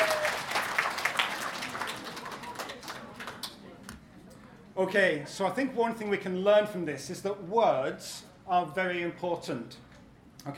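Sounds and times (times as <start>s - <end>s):
audience applause: 0.0s - 3.6s
speech: 4.8s - 10.5s.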